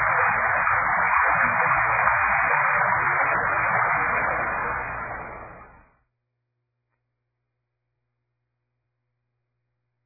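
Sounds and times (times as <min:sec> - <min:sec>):
rain: 0:00.0 - 0:05.9
thunder: 0:00.0 - 0:05.9.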